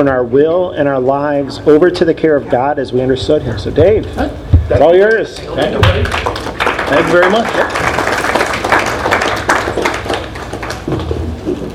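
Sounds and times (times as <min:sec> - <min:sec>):
speech: 0:00.0 - 0:08.0
weak audience clapping: 0:05.0 - 0:11.4.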